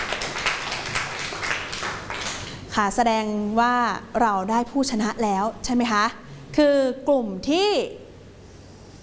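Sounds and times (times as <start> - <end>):
students clapping for a classmate: 0.0 - 2.6
speech: 2.8 - 8.0.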